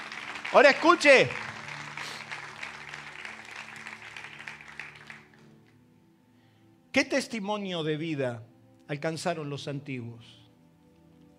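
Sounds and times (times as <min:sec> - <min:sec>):
loud audience applause: 0:00.0 - 0:05.5
speech: 0:00.5 - 0:01.4, 0:07.0 - 0:10.4.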